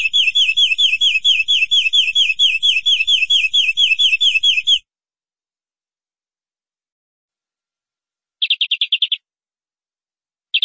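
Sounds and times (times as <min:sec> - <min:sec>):
canary song of quick chirped notes: 0:00.0 - 0:04.8, 0:08.4 - 0:09.2.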